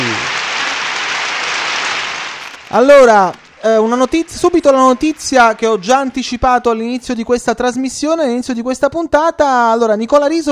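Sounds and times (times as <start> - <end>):
studio applause for radio listeners: 0.0 - 6.8
speech: 2.7 - 10.5.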